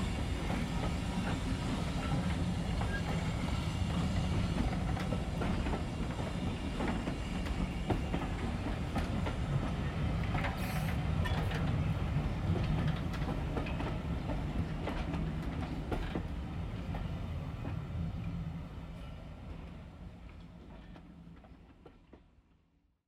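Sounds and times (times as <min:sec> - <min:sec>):
steam train chugging at Grosmont in North Yorkshire: 0:00.0 - 0:17.8.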